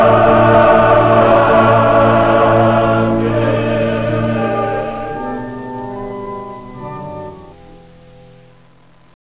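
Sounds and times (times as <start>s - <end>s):
organ reed stops trumpet clarion oboe playing in cathedral: 0.0s - 9.1s.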